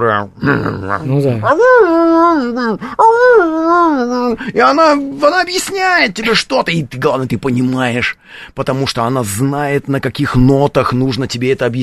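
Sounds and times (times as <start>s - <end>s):
speech: 0.0s - 11.8s
voice imitating a husky dog howling: 0.4s - 4.4s.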